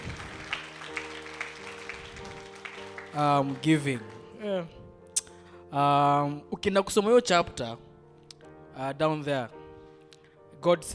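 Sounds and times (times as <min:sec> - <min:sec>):
audience applause: 0:00.0 - 0:04.3
speech: 0:03.2 - 0:04.8, 0:05.7 - 0:07.9, 0:08.8 - 0:09.6, 0:10.6 - 0:10.9.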